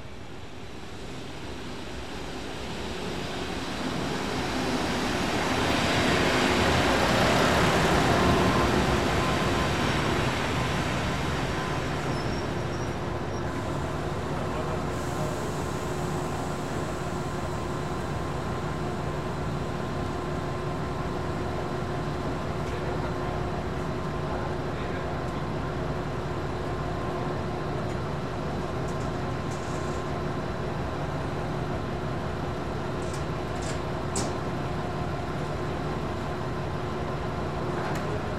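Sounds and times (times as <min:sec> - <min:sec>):
roadside station ambience in Italy: 0:00.0 - 0:38.3.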